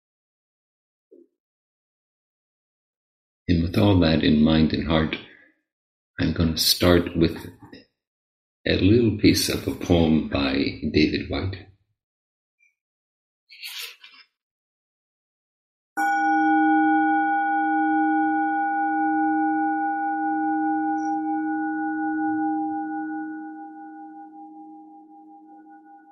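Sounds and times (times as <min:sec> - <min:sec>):
speech: 0:03.5 - 0:05.3, 0:06.2 - 0:07.8, 0:08.6 - 0:11.7
reverberating bell: 0:16.0 - 0:26.1.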